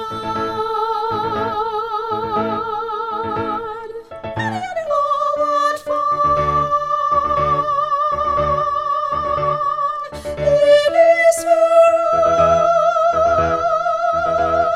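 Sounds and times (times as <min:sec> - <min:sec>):
isolated soprano voice singing: 0:00.0 - 0:14.7.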